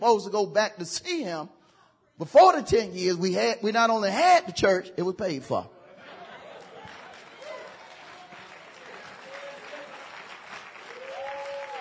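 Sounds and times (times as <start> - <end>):
speech: 0.1 - 1.6, 2.2 - 5.8
laughter: 5.7 - 8.3
audience clapping: 6.4 - 11.7.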